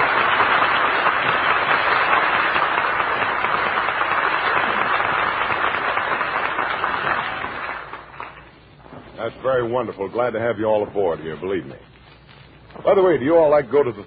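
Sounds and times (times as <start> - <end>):
audience applause: 0.0 - 8.6
speech: 9.6 - 11.9, 12.8 - 14.0.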